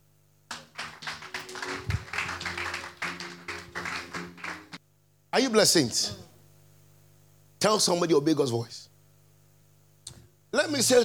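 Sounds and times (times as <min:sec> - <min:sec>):
church audience clapping: 0:00.5 - 0:04.8
speech: 0:05.4 - 0:06.3, 0:07.6 - 0:08.9, 0:10.7 - 0:11.0.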